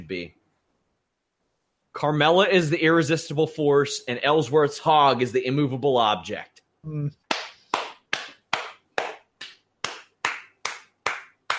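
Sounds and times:
speech: 0.1 - 0.4, 2.0 - 7.2
person clapping hands: 7.2 - 11.5.

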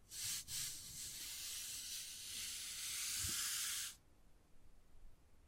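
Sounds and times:
wood carving scratching: 0.1 - 4.0.

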